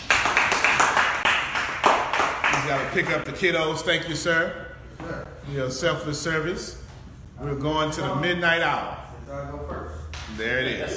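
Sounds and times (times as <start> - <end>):
crowd applauding: 0.0 - 2.9
speech: 2.7 - 6.8, 7.4 - 10.9.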